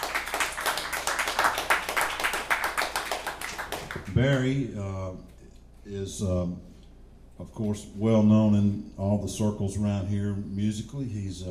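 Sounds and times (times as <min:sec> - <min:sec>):
audience applause: 0:00.0 - 0:04.1
speech: 0:04.2 - 0:06.7, 0:07.4 - 0:11.4.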